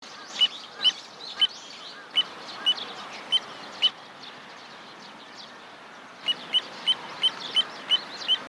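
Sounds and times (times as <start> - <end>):
little ringed plover piping calls: 0.0 - 4.4, 6.2 - 8.4.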